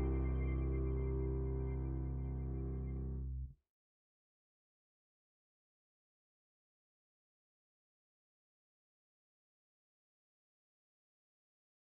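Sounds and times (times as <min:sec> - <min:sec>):
piano: 0:00.0 - 0:03.4.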